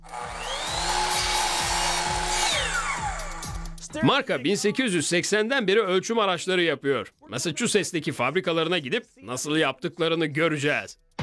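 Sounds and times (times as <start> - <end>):
power saw making a 45-degree angled cut: 0.0 - 3.6
speech: 3.9 - 11.0.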